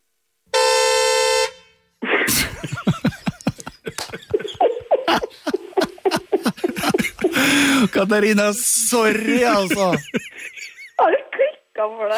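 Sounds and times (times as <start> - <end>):
squeeze-bulb horn honk: 0.5 - 2.0
loud laughter: 2.0 - 11.3
excited voices: 3.8 - 11.5
speech: 7.9 - 10.2.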